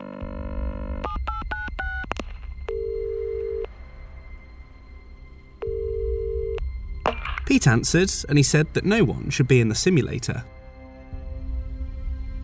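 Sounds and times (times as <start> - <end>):
telephone ringing tones: 0.0 - 3.7, 5.6 - 6.6
low hum: 0.3 - 10.4
touch-tone beeps of a telephone dialing a crew room: 1.0 - 3.7, 5.6 - 6.6
speech: 7.5 - 10.6.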